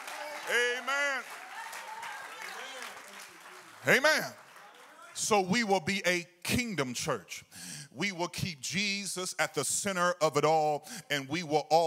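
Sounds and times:
audience clapping hands: 0.0 - 5.3
speech: 0.5 - 1.4, 3.8 - 4.4, 5.2 - 11.8.

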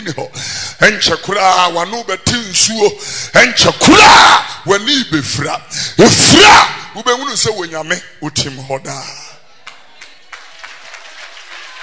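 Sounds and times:
speech: 0.0 - 9.2
audience clapping hands: 9.6 - 11.8.

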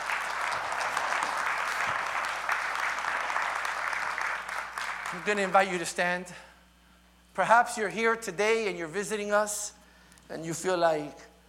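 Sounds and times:
audience clapping: 0.0 - 5.9
speech: 5.1 - 6.5, 7.4 - 11.3.

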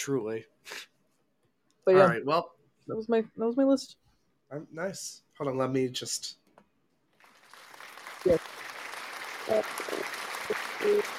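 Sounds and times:
speech: 0.0 - 0.9, 1.8 - 6.4, 8.2 - 8.6, 9.5 - 10.2, 10.8 - 11.0
applause sound effect from a small group: 7.2 - 11.1.

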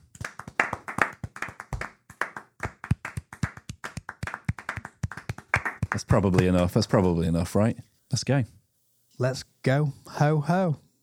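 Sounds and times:
hands clapping: 0.0 - 7.5
speech: 6.0 - 8.6, 9.2 - 10.8.

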